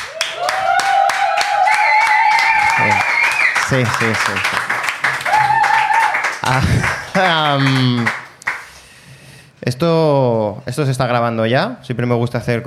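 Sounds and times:
audience applause: 0.0 - 8.7
speech: 3.7 - 4.7, 6.4 - 8.2, 9.7 - 12.6
laughter: 6.4 - 7.1.

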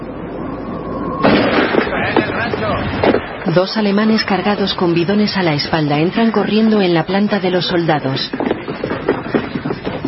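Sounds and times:
faint steady hum: 0.0 - 10.0
rumbling tail with small bangs: 1.0 - 3.5, 8.3 - 10.0
sniper rifle shot: 1.2 - 2.2
speech: 3.4 - 8.5.

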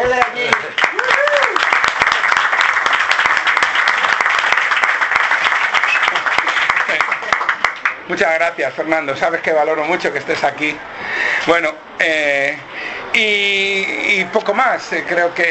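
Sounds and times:
audience applause: 0.0 - 8.1
speech: 8.1 - 15.5.

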